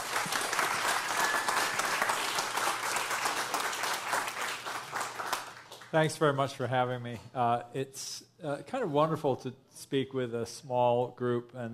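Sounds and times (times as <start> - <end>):
audience applause: 0.0 - 5.9
speech: 5.9 - 11.7.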